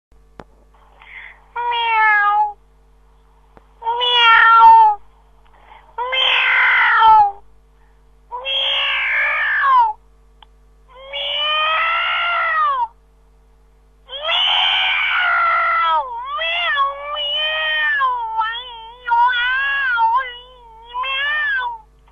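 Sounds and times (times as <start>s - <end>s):
cat meowing: 1.6s - 2.6s, 3.9s - 5.0s, 6.0s - 7.4s, 8.4s - 10.0s, 11.0s - 12.9s, 14.1s - 21.8s.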